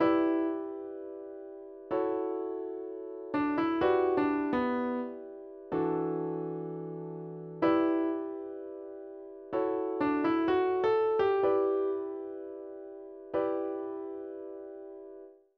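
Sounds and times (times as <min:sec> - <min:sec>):
instrumental music: 0:00.0 - 0:15.3.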